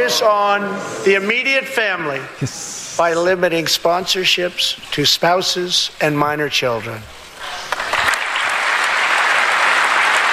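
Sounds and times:
speech: 0.2s - 7.2s
large audience applause after a speech: 7.4s - 10.3s.

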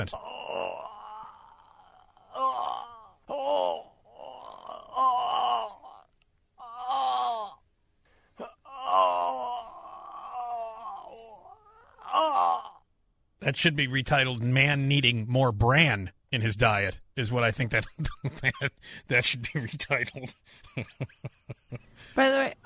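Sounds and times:
speech: 0.0s - 0.7s, 13.5s - 22.5s
man groaning and moaning: 0.0s - 7.6s, 8.4s - 12.8s.

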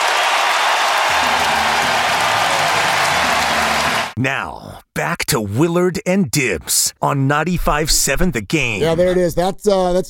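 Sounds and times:
baseball stadium crowd cheering: 0.0s - 4.2s
speech: 4.2s - 10.0s.

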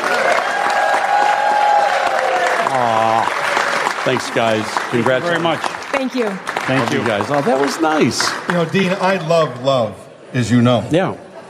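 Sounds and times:
audience applause: 0.0s - 9.5s
speech: 2.7s - 3.3s, 4.0s - 11.2s.

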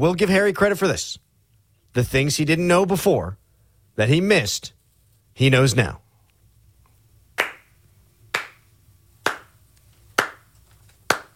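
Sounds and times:
speech: 0.0s - 1.2s, 1.9s - 3.4s, 4.0s - 4.8s, 5.4s - 6.0s
person clapping hands: 7.4s - 7.7s, 8.3s - 8.6s, 9.2s - 9.6s, 10.2s - 11.3s.

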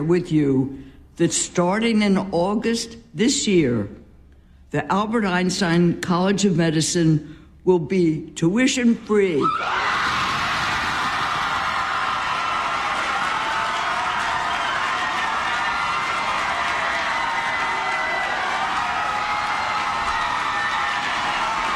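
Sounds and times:
speech: 0.0s - 4.0s, 4.7s - 10.1s
audience applause and cheering: 9.6s - 21.7s.

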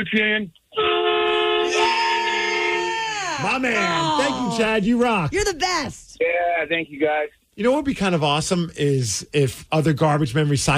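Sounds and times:
speech: 0.0s - 0.6s, 3.4s - 10.7s
truck horn honking: 0.8s - 3.1s.

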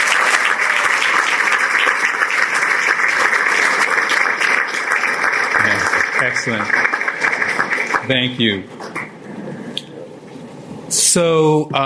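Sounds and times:
audience applause: 0.0s - 9.8s
speech: 6.2s - 6.8s, 8.1s - 8.8s, 11.1s - 11.8s.

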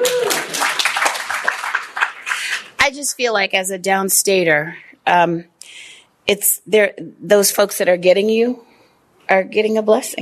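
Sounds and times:
audience applause: 0.0s - 2.8s
speech: 2.9s - 8.7s, 9.3s - 10.2s.

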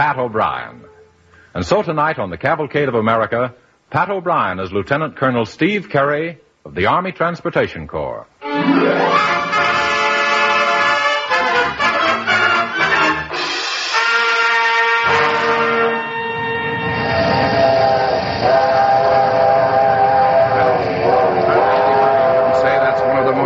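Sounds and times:
speech: 0.0s - 0.9s, 1.5s - 9.8s
big steam locomotive running: 9.1s - 23.4s.

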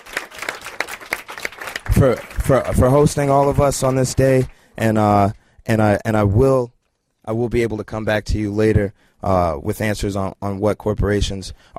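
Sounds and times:
sparse audience clapping at a press event: 0.0s - 4.6s
speech: 2.0s - 11.7s.

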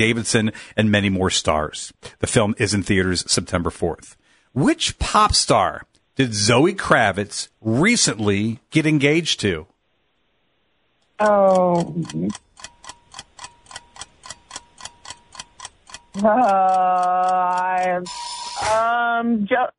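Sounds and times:
speech: 0.0s - 9.7s, 11.2s - 12.7s, 16.2s - 19.7s
quiz game buzzer: 17.8s - 18.8s.

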